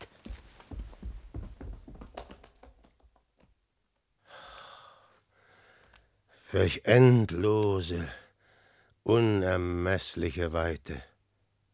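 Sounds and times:
irregular footsteps thudding and scuffing: 0.0s - 3.5s
drawn-out breathy hiss: 4.2s - 5.9s
speech: 6.5s - 8.2s, 9.1s - 11.1s.

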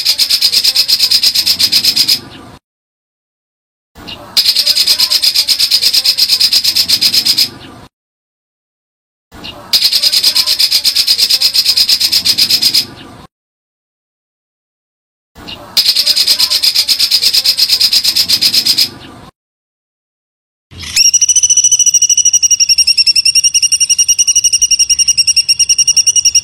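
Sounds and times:
white-eye buzzy trilling song: 0.0s - 2.4s, 4.0s - 7.6s, 9.4s - 13.0s, 15.4s - 19.1s, 20.7s - 26.4s.

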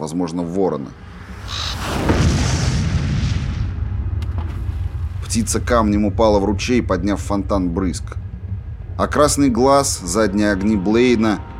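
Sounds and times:
speech: 0.0s - 2.3s, 5.3s - 8.2s, 9.0s - 11.5s
explosion shock wave boom: 1.0s - 8.6s.

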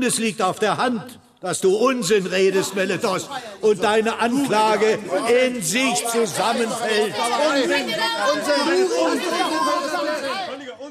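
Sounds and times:
speech: 0.0s - 10.8s
outraged courtroom spectators murmuring and grumbling: 2.6s - 10.6s.

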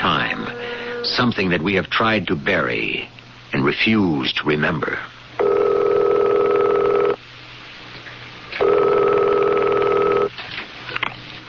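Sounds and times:
speech: 1.2s - 5.1s
telephone ringing through to an answering machine: 5.4s - 7.2s, 8.6s - 10.3s.

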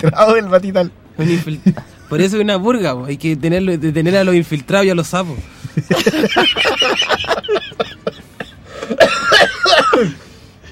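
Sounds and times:
speech: 0.0s - 8.0s, 8.9s - 10.2s
laughter: 1.2s - 2.2s, 5.6s - 10.1s
person coughing harshly: 8.0s - 10.3s
raspy throat clearing: 8.9s - 10.2s.

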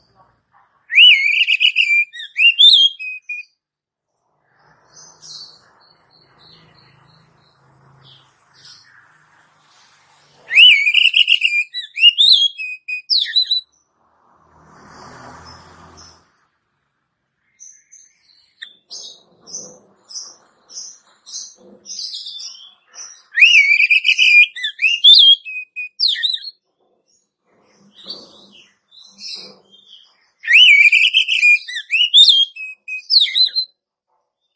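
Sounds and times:
Oriental magpie-robin whistled phrase: 0.9s - 3.4s, 10.5s - 13.6s, 23.3s - 26.5s, 30.4s - 33.7s.

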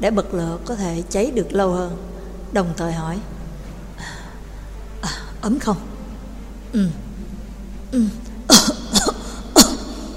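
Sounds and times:
speech: 0.0s - 3.4s, 5.4s - 5.9s, 6.7s - 7.0s, 7.9s - 8.2s
person coughing: 8.0s - 10.1s.

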